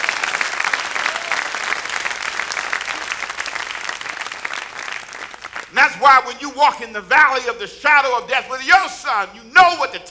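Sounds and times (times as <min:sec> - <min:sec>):
audience clapping hands: 0:00.0 - 0:06.4
speech: 0:05.7 - 0:10.0.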